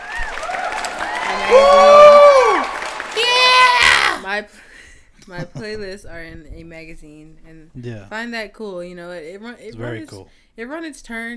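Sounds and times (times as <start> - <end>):
applause: 0.0 - 3.8
crowd cheering and whooping: 0.0 - 4.2
speech: 4.3 - 4.6, 5.3 - 11.3.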